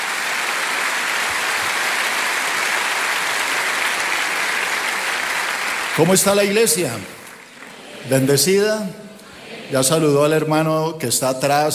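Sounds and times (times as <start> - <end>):
audience applauding: 0.0 - 8.5
speech: 6.0 - 7.2, 8.0 - 9.0, 9.7 - 11.7.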